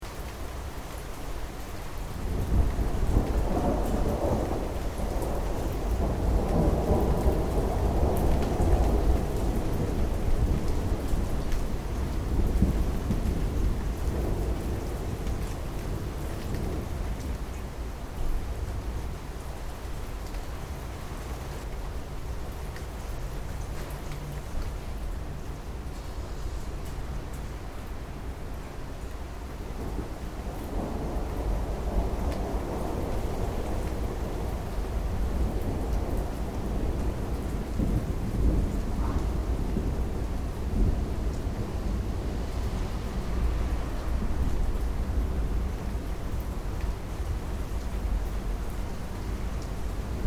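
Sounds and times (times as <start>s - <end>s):
heavy rain in Japan: 0.0s - 50.2s
slight wind noise: 0.0s - 50.2s
thunder in Japan: 2.2s - 17.6s, 29.6s - 48.3s, 49.2s - 50.2s.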